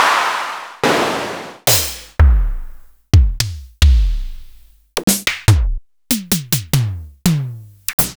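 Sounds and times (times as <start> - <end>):
Roland MV8800 analog drum machine beat: 1.7 - 8.1.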